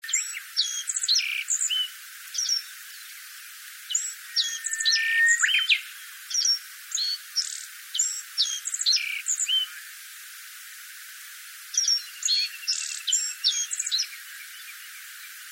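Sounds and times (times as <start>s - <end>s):
reed bunting chirping song: 0.1s - 3.3s, 3.9s - 9.8s, 11.8s - 15.4s
long low thin whistle: 4.0s - 6.1s.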